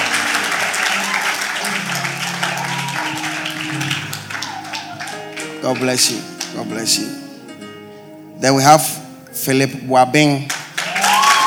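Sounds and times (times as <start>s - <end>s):
audience clapping: 0.0s - 7.2s, 10.4s - 11.4s
speech: 5.6s - 7.2s, 8.4s - 10.6s.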